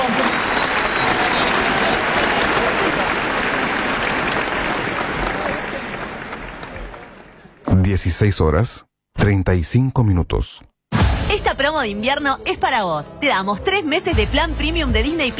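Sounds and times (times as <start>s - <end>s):
large audience applause: 0.0s - 7.6s
speech: 8.0s - 10.7s, 11.3s - 15.3s.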